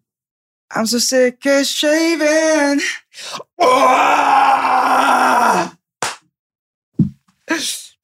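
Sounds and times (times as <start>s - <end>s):
speech: 0.7s - 5.8s, 7.6s - 8.0s
grunty scream: 3.6s - 5.8s.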